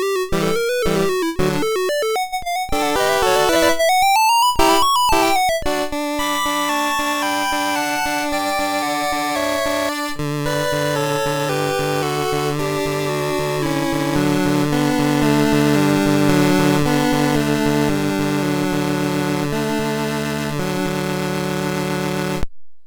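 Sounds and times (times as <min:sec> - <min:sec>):
chiptune music on a MOS6581R3 sound chip: 0:00.0 - 0:22.4.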